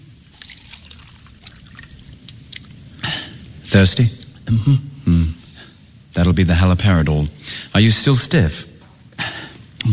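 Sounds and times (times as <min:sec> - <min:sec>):
water pouring into a cup: 0:00.2 - 0:02.2
speech: 0:03.7 - 0:05.4, 0:06.1 - 0:08.7.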